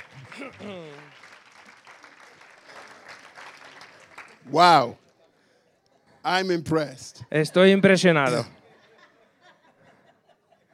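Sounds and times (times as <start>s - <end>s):
laughter: 0.0s - 1.2s, 8.3s - 10.7s
audience applause: 0.0s - 4.9s
speech: 0.4s - 1.2s, 4.4s - 5.0s, 6.2s - 8.6s.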